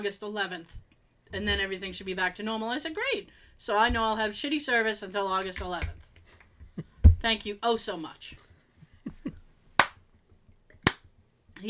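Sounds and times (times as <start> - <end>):
speech: 0.0 - 6.1, 6.8 - 8.4
slow sarcastic hand clapping: 9.8 - 10.0, 10.8 - 11.0.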